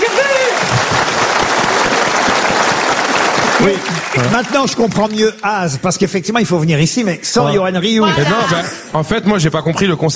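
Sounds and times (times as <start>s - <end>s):
audience applause: 0.0s - 5.6s
speech: 3.6s - 10.1s.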